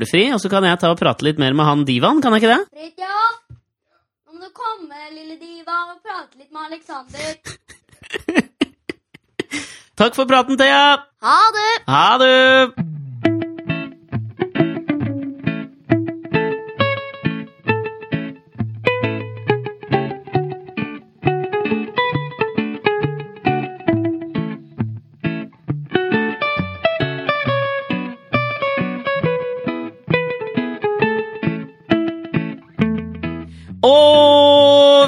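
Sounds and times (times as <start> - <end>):
speech: 0.0 - 3.5, 4.4 - 8.5, 9.5 - 12.9
laughter: 7.2 - 9.7
electric guitar jingle played on a 1977 Stratocaster: 12.7 - 35.0.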